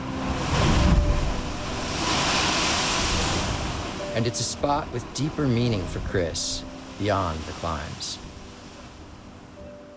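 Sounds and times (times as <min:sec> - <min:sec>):
ocean waves booming through a sea blowhole: 0:00.0 - 0:06.2
churning water and spray: 0:00.0 - 0:08.9
speech: 0:04.2 - 0:08.3.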